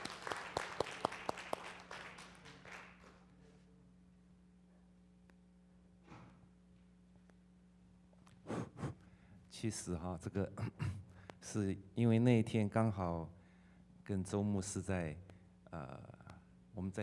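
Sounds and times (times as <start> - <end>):
audience clapping at a church gathering: 0.0 - 3.3
quiet hum: 0.0 - 17.0
speech: 9.6 - 10.7, 11.5 - 13.4, 14.1 - 16.1, 16.8 - 17.0.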